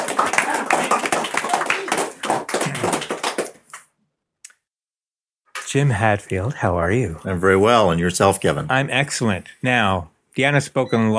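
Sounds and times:
crowd applauding: 0:00.0 - 0:03.8
speech: 0:05.7 - 0:11.1.

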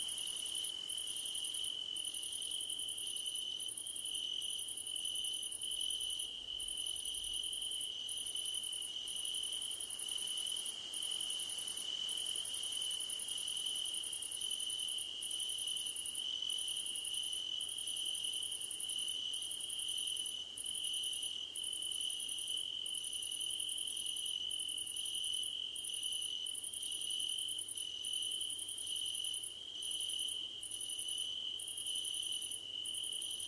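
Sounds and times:
cricket chorus chirping in pulsed bursts: 0:00.0 - 0:33.4.

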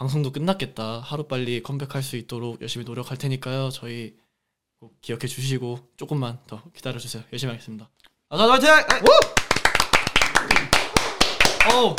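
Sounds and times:
speech: 0:00.0 - 0:04.2, 0:04.8 - 0:09.3, 0:11.6 - 0:11.9
clapping: 0:08.9 - 0:11.9.

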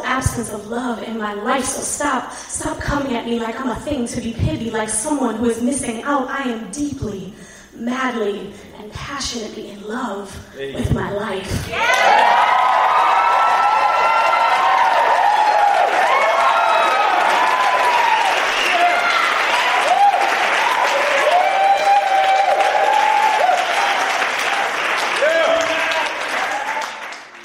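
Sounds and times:
speech: 0:00.2 - 0:12.5
scattered whoops and cheering voices: 0:11.7 - 0:27.1
large audience applause: 0:11.8 - 0:27.4.

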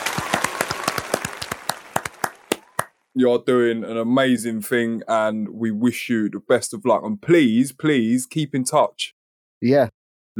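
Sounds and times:
crowd round of applause: 0:00.0 - 0:03.0
speech: 0:03.2 - 0:10.3.

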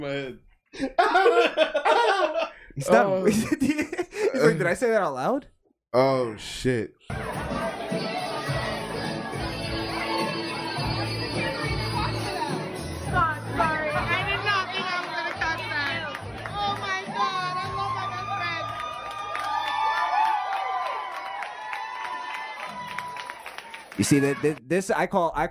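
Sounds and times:
speech: 0:00.0 - 0:07.3, 0:24.0 - 0:25.5
laughter: 0:00.8 - 0:04.6, 0:07.1 - 0:10.2
crowd cheering and shouting: 0:07.1 - 0:24.6.

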